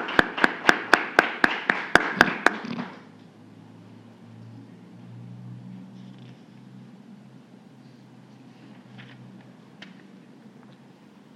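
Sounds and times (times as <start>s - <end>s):
rhythmic audience applause: 0.0s - 3.1s.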